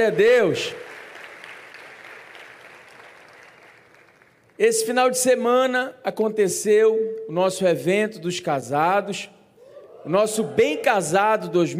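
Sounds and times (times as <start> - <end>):
speech: 0.0 - 0.9, 4.6 - 9.4, 10.0 - 11.7
crowd applauding: 0.0 - 4.6.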